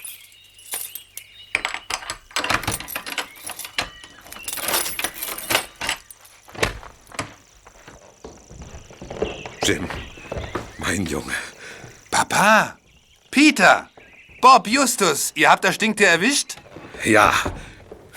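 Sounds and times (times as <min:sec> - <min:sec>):
keys jangling: 0:00.0 - 0:07.7
speech: 0:09.7 - 0:10.1, 0:10.9 - 0:11.5, 0:12.4 - 0:12.8, 0:13.4 - 0:17.6.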